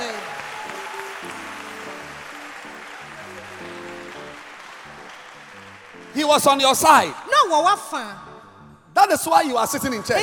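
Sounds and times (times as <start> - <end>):
audience clapping: 0.0 - 7.3
speech: 6.2 - 8.3, 9.0 - 10.2.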